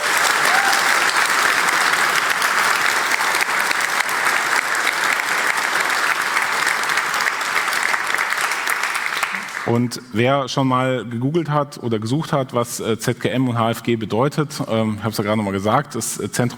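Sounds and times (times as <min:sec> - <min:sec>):
audience applause: 0:00.0 - 0:09.8
speech: 0:09.7 - 0:16.5.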